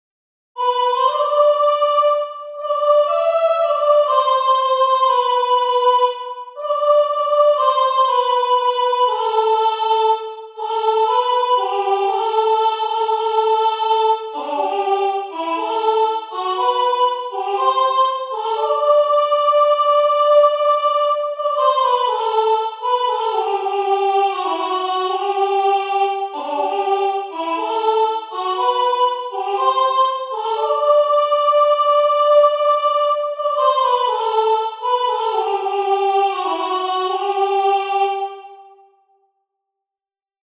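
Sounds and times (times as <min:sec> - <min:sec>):
soprano singing: 0:00.6 - 0:38.8.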